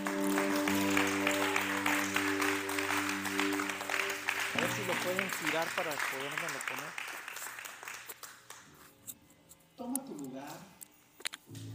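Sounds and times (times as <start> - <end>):
sustained low organ or keyboard chord: 0.0 - 5.9
audience applause: 0.0 - 8.6
speech: 5.0 - 7.3, 9.8 - 10.8.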